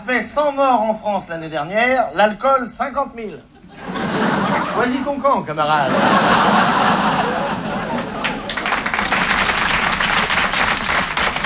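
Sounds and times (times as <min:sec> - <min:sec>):
speech: 0:00.1 - 0:03.5, 0:04.7 - 0:06.8
laughter: 0:03.6 - 0:09.6
live audience applause: 0:06.1 - 0:11.4
crowd murmur and chatter: 0:06.4 - 0:09.2.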